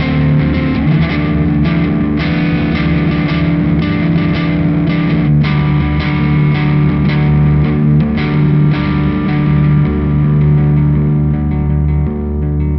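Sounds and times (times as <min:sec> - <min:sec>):
electric guitar from clean to overdriven, testing dynamic response: 0:00.0 - 0:12.7.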